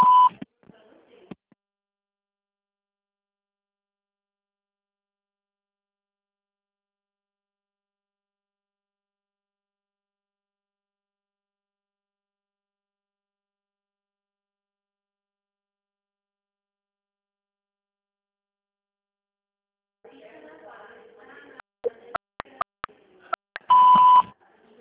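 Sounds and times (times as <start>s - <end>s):
telephone signal tone beep: 0.0s - 0.4s, 23.6s - 24.3s.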